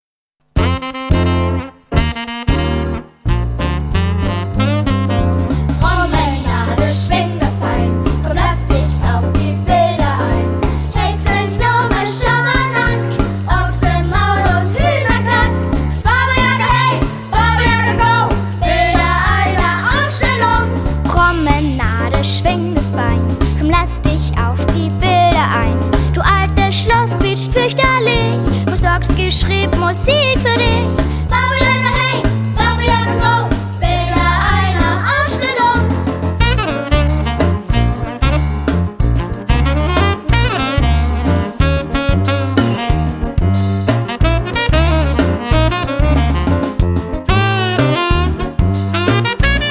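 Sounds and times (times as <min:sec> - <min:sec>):
rock drums: 0:00.4 - 0:49.6.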